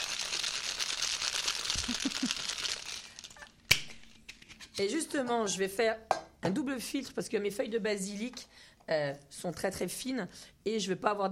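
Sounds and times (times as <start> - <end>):
ice rattling in a cocktail shaker: 0.0 - 3.6
speech: 4.8 - 11.3.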